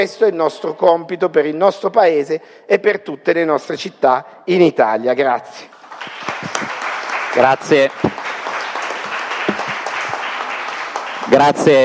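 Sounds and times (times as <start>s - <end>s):
speech: 0.0s - 6.1s, 7.3s - 8.2s, 11.3s - 11.8s
audience applause: 5.7s - 11.8s.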